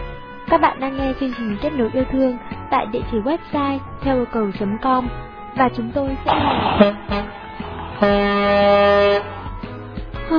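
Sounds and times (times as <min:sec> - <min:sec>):
speech: 0:00.5 - 0:07.4, 0:08.0 - 0:09.4
car horn honking outside: 0:06.3 - 0:09.6.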